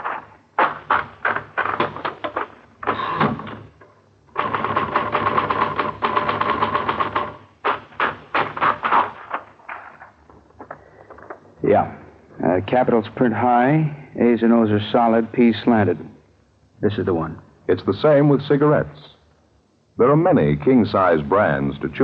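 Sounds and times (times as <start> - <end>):
typewriter typing: 0.0 - 3.6, 4.4 - 9.9
speech: 12.7 - 16.1, 16.8 - 19.1, 20.0 - 22.0.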